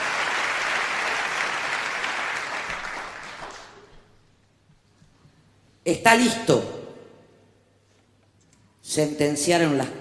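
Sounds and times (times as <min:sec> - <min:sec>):
audience applauding poets: 0:00.0 - 0:04.0
speech: 0:05.8 - 0:06.8, 0:09.0 - 0:09.9.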